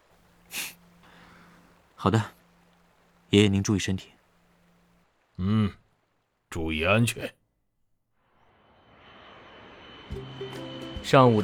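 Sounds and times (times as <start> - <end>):
speech: 2.0 - 2.4, 3.3 - 4.2, 5.4 - 5.8, 6.5 - 7.4, 11.0 - 11.4
airplane engine flying: 8.5 - 11.4.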